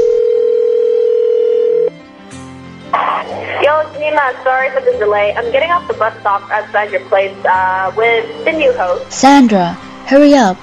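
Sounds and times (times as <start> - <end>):
telephone dial tone while calling: 0.0 - 1.9
speech: 4.2 - 10.6.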